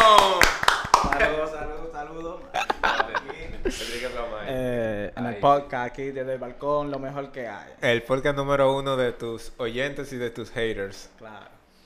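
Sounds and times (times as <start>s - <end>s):
applause: 0.0s - 1.4s
laughter: 2.5s - 4.2s
speech: 3.7s - 11.6s.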